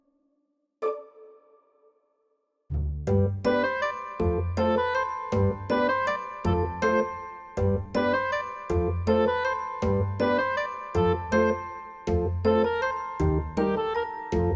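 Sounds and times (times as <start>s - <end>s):
comic clarinet melody: 3.5s - 14.5s.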